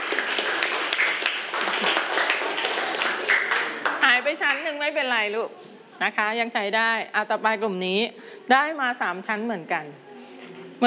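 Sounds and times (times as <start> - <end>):
classroom applause: 0.0 - 4.7
speech: 4.3 - 10.1.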